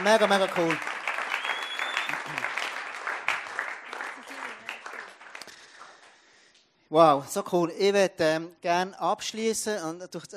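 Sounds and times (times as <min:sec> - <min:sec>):
speech: 0:00.0 - 0:01.0, 0:06.9 - 0:10.3
audience applause: 0:00.0 - 0:06.2.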